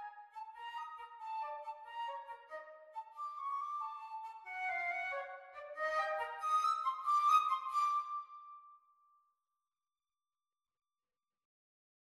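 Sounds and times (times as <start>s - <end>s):
flute: 0.0s - 8.9s.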